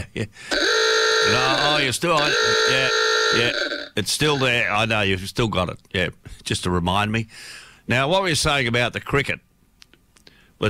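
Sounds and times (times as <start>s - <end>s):
speech: 0.2s - 9.5s
Klaxon horn honking: 0.6s - 3.8s.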